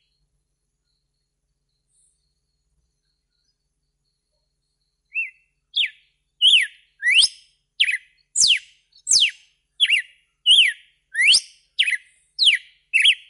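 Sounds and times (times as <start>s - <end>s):
red-cowled cardinal whistled song: 5.0s - 13.2s.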